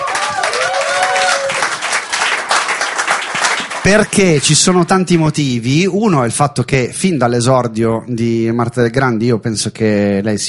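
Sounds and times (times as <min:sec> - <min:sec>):
audience applause: 0:00.0 - 0:04.2
speech: 0:03.9 - 0:10.4.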